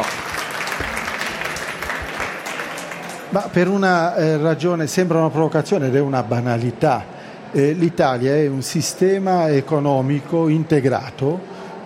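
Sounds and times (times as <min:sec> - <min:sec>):
audience applause for a guest at an economics talk: 0:00.0 - 0:03.8
speech: 0:03.3 - 0:11.8.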